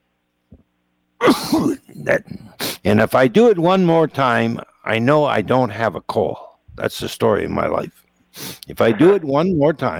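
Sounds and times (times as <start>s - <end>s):
sneeze: 1.2s - 1.9s
speech: 1.4s - 9.9s.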